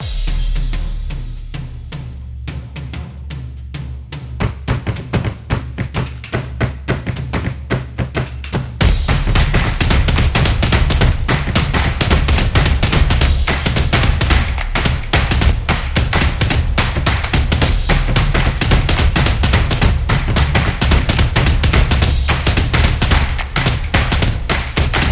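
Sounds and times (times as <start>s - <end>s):
jazz drum beat: 0.0s - 25.0s.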